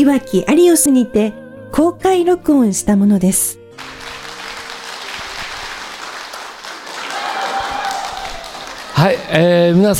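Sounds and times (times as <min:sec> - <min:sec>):
speech: 0:00.0 - 0:03.9, 0:09.0 - 0:09.9
audience applause: 0:03.8 - 0:09.9.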